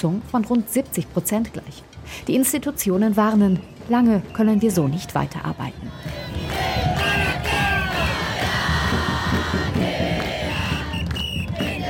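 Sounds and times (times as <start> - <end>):
speech: 0.0 - 6.4
protest crowd chanting slogans: 5.7 - 11.8.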